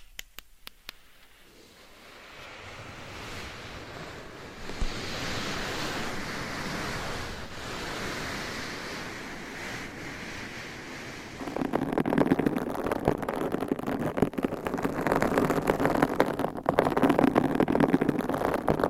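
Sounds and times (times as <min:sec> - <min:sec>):
scratching and rubbing on a microphone: 0:04.6 - 0:18.8.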